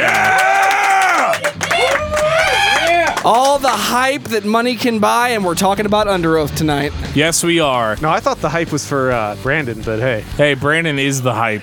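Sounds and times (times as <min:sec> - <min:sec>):
live audience clapping: 0:00.0 - 0:04.0
speech: 0:03.3 - 0:11.6.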